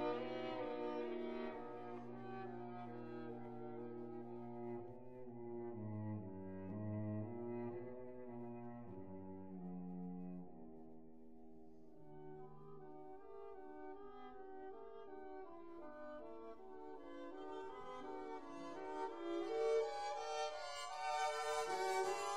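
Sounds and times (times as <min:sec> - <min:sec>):
string quartet: 0:00.0 - 0:09.9, 0:16.1 - 0:22.3.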